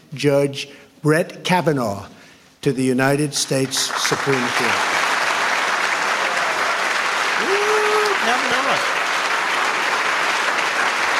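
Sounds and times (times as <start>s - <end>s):
speech: 0.1s - 5.0s
crowd clapping: 3.4s - 11.1s.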